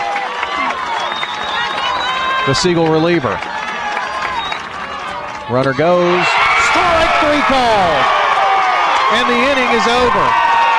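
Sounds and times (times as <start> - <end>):
fans cheering at a baseball game: 0.0 - 10.7
speech: 2.4 - 3.5, 5.5 - 6.4, 7.2 - 8.2, 9.1 - 10.4.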